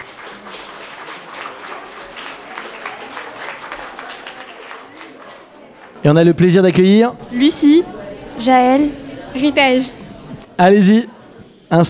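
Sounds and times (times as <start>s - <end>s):
crowd applauding: 0.0s - 10.5s
speech: 6.0s - 10.0s, 10.6s - 11.1s.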